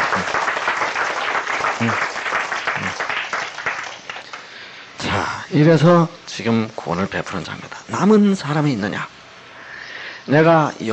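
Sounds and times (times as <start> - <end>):
audience applause: 0.0 - 4.5
speech: 1.8 - 2.1, 5.5 - 9.1, 10.3 - 10.9.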